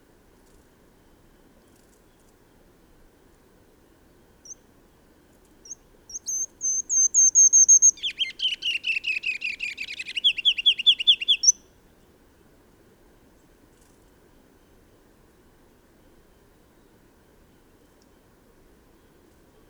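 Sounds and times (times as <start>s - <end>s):
bird singing bright down-slurred chirped notes: 5.6s - 11.6s.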